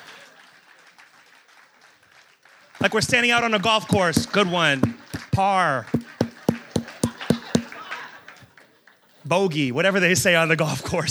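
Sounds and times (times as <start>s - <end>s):
audience clapping: 0.0s - 3.1s, 6.0s - 8.1s
speech: 2.8s - 6.0s, 9.3s - 11.0s.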